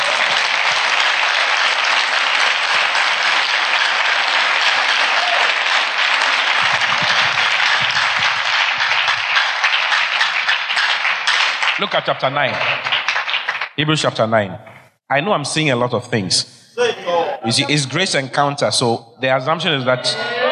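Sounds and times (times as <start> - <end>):
crowd applauding: 0.0 - 13.8
speech: 11.8 - 12.9, 13.8 - 20.4.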